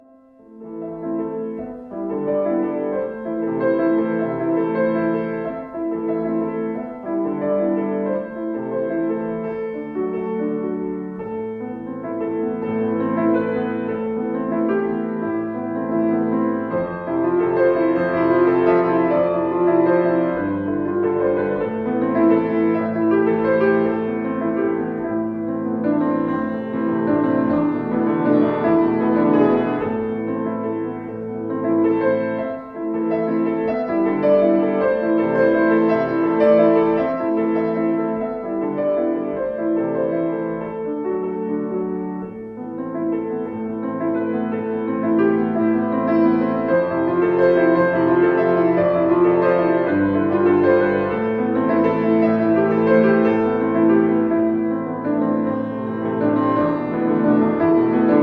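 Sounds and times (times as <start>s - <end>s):
piano: 0.0s - 58.2s.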